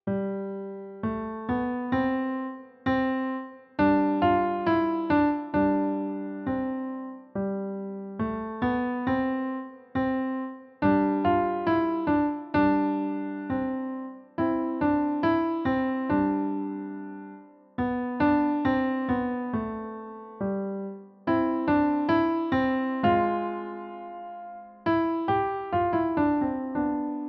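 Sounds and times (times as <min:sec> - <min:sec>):
piano: 0:00.0 - 0:27.2.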